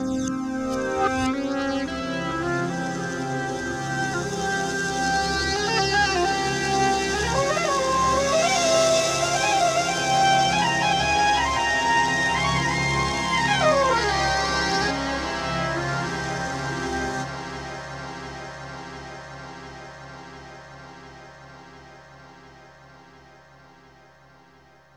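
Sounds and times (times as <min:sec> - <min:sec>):
ambient saxophone: 0:00.0 - 0:17.9.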